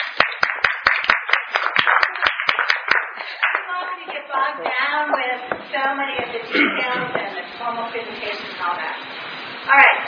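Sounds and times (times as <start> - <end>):
audience clapping: 0.0 - 5.3
speech: 4.3 - 10.0.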